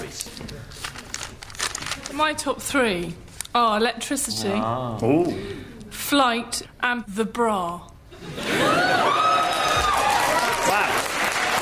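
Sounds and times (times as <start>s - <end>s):
speech: 2.2s - 9.3s
audience applauding and cheering: 8.5s - 11.6s.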